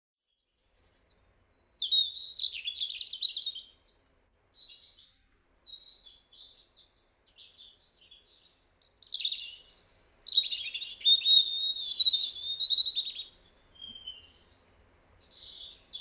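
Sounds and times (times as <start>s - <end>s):
European robin song: 0.9s - 15.9s.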